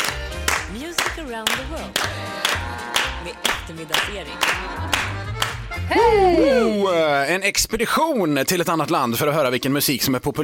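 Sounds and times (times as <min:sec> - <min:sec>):
clapping along: 0:00.0 - 0:05.8
speech: 0:01.2 - 0:10.4.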